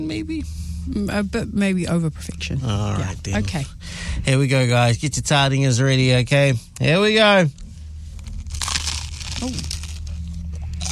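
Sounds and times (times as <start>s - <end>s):
speech: 0.0s - 7.6s, 9.4s - 9.8s
crunchy bite of overcooked food: 8.3s - 10.9s.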